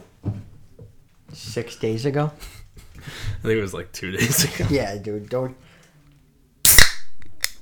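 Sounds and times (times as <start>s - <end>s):
speech: 1.4s - 5.7s
cherry Coke can cracking open: 6.7s - 7.5s.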